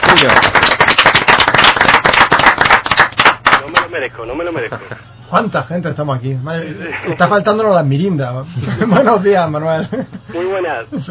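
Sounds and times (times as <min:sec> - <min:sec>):
applause: 0:00.0 - 0:03.9
speech: 0:00.2 - 0:00.6, 0:04.0 - 0:11.0.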